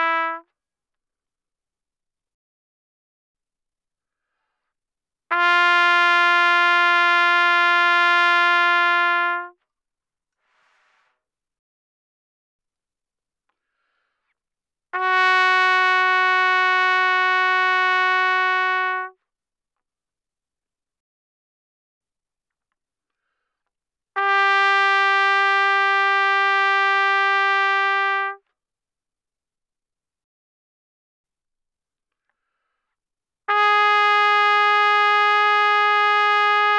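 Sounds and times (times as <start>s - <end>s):
very loud trumpet notes without vibrato: 0.0s - 0.4s, 5.3s - 9.5s, 15.0s - 19.2s, 24.2s - 28.4s, 33.5s - 36.7s.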